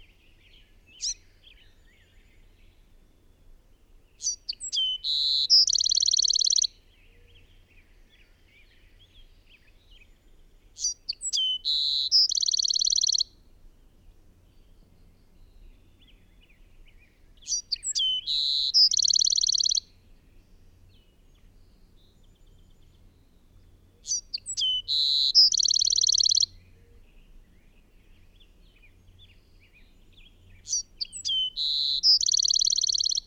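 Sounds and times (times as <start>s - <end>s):
bird song with buzzy trill: 0.0s - 2.8s, 4.1s - 13.4s, 14.4s - 33.2s.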